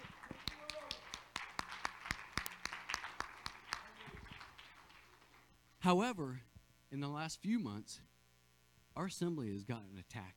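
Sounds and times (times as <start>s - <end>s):
audience clapping: 0.0s - 5.6s
hum: 0.0s - 10.3s
speech: 5.8s - 8.1s, 9.0s - 10.3s.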